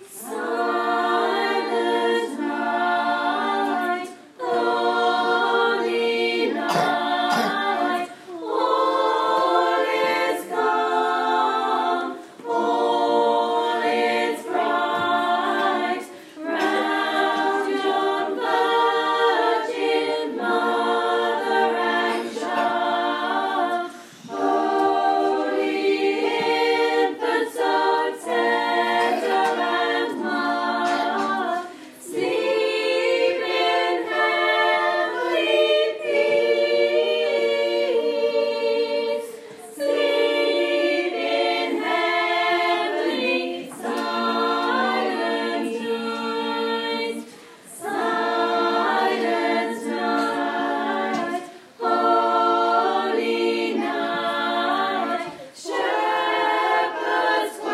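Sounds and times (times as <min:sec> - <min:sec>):
staff choir singing: 0:00.0 - 0:57.7.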